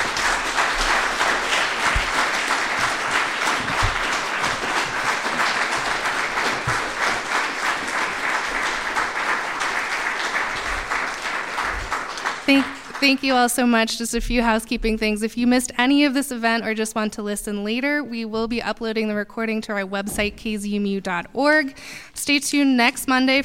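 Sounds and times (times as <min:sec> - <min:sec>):
audience round of applause: 0:00.0 - 0:13.3
speech: 0:12.5 - 0:23.4.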